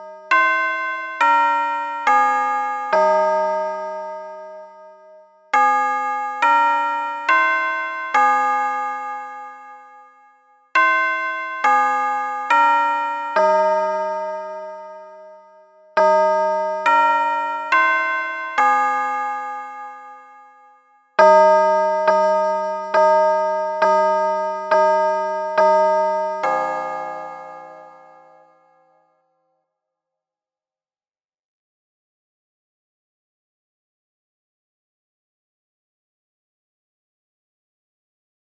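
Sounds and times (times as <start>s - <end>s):
chime: 0.0s - 29.3s.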